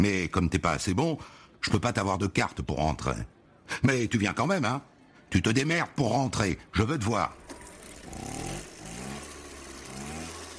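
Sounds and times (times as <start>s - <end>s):
speech: 0.0s - 7.4s
Mobylette moped engine revving as the rider pulls away: 7.3s - 10.5s.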